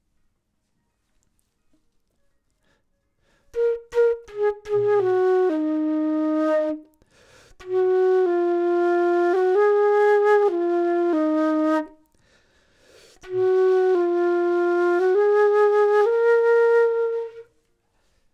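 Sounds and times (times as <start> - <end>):
flute: 3.3 - 12.2, 13.2 - 17.8.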